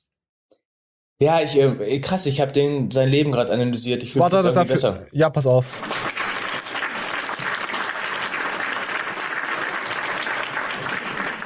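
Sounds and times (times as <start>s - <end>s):
speech: 1.2s - 6.1s
audience applause: 5.6s - 11.4s.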